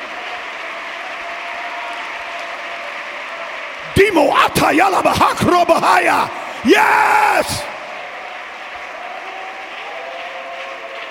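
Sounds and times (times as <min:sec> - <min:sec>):
audience clapping hands: 0:00.0 - 0:11.0
speech: 0:03.9 - 0:07.7.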